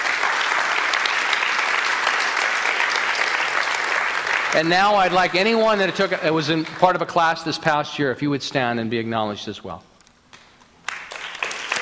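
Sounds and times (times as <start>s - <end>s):
audience applause: 0.0s - 7.4s, 10.9s - 11.8s
speech: 4.6s - 9.9s.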